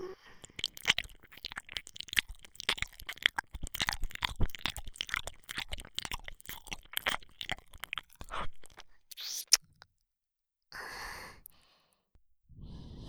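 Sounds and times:
reversed left ear licking: 0.4s - 9.8s.

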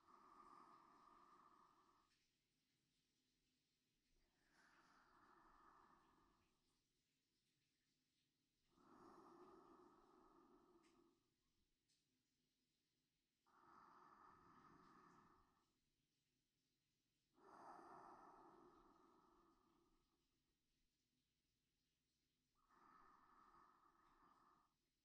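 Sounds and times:
sleep breathing: 0.0s - 3.2s, 4.1s - 12.0s, 13.4s - 16.0s, 17.2s - 20.4s, 22.4s - 25.0s.

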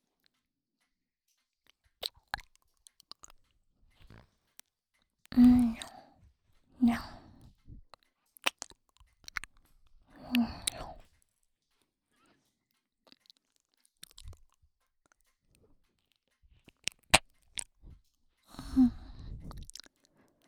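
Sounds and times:
ASMR mouth sounds of ear biting and chewing: 2.0s - 4.6s, 5.2s - 11.3s, 13.0s - 20.4s
faint whispery breaths: 5.4s - 7.8s, 10.0s - 11.1s, 17.8s - 20.4s.

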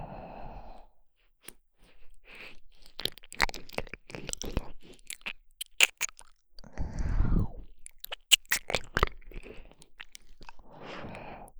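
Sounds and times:
ear licking in the right ear: 1.5s - 6.7s, 7.7s - 11.5s.

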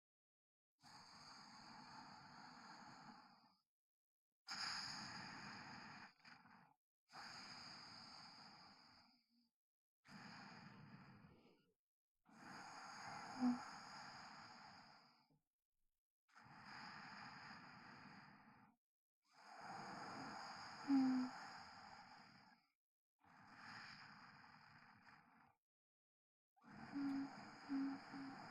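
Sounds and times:
sleep breathing recorded with binaural microphone: 0.8s - 3.6s, 4.5s - 9.3s, 10.1s - 11.5s, 12.3s - 15.3s, 16.3s - 18.8s, 19.4s - 22.6s, 23.2s - 25.6s, 26.6s - 28.4s.

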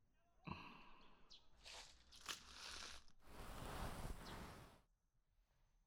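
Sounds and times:
ear licking: 1.6s - 3.1s
lotion hand strokes: 1.6s - 4.7s.

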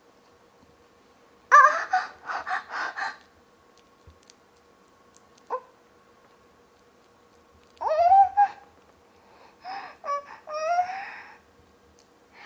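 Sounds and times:
young woman moaning in climax: 1.5s - 3.2s, 9.7s - 11.3s.

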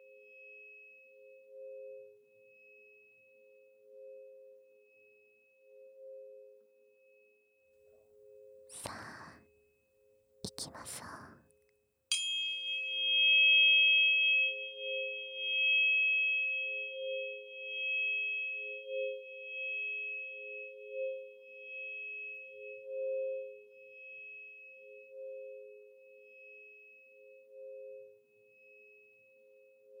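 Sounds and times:
417 Hz and 528 Hz healing tuning forks ringing: 12.1s - 24.8s.

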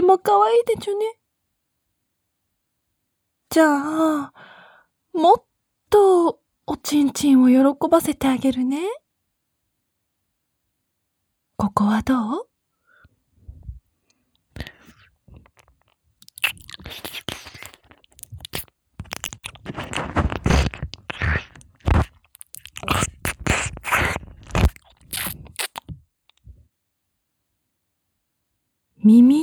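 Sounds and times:
speech: 0.1s - 1.2s, 3.5s - 4.5s, 5.2s - 9.0s, 11.6s - 12.5s, 16.8s - 17.3s, 29.0s - 29.4s
wet ear-licking mouth sounds from an ASMR recording: 14.6s - 26.4s.

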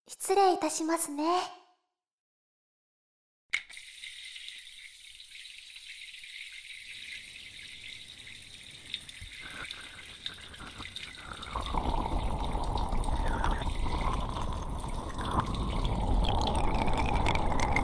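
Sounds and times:
speech: 0.1s - 1.6s
shower water running: 3.6s - 17.8s.

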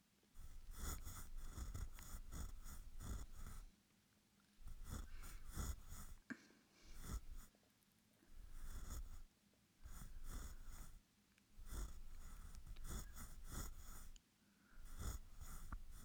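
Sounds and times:
ear pick cleaning in the left ear: 0.4s - 3.7s, 4.6s - 6.2s, 6.9s - 7.5s, 8.4s - 11.0s, 11.6s - 14.2s, 14.8s - 16.0s.

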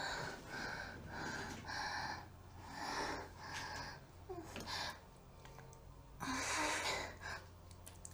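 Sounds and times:
young woman moaning: 0.1s - 5.0s, 6.2s - 7.4s.

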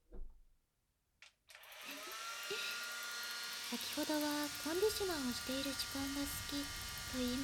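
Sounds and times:
hair dryer drying a customer's hair at a salon: 1.6s - 7.4s
speech: 3.7s - 7.4s.

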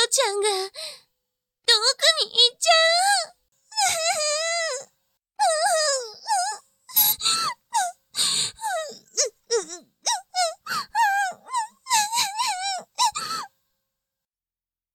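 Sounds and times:
speech: 0.1s - 1.0s
person fake crying with wails and sobs: 2.9s - 4.9s, 5.5s - 13.5s.

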